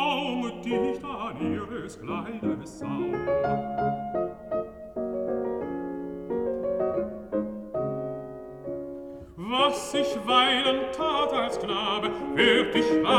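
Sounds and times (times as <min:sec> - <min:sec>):
person singing: 0:00.0 - 0:03.5, 0:09.3 - 0:13.1
piano: 0:00.0 - 0:13.1.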